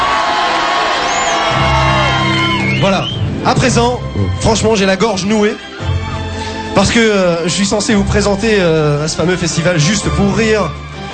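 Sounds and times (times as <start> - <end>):
comedy festival audience cheering and whooping for a performer: 0.0 - 3.4
speech: 2.8 - 5.9, 6.8 - 11.1.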